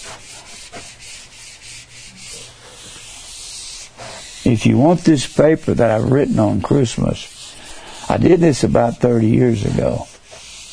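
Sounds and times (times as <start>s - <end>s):
board wiped with an eraser: 0.0s - 10.7s
speech: 4.5s - 7.3s, 8.1s - 10.1s.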